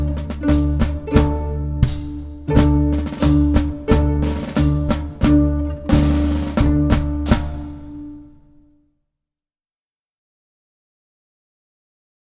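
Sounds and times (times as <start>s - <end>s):
cheerleading duet: 0.0s - 8.2s.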